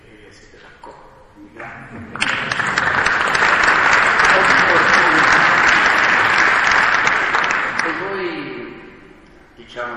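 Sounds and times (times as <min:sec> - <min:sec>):
speech: 0:00.3 - 0:02.7
audience applause: 0:02.1 - 0:08.4.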